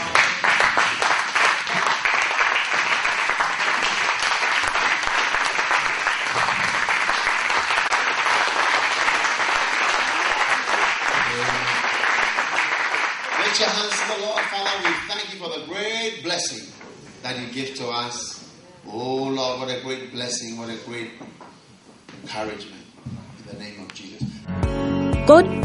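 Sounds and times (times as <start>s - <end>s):
audience clapping: 0.0s - 15.4s
speech: 16.0s - 21.4s, 22.3s - 22.8s, 25.3s - 25.6s.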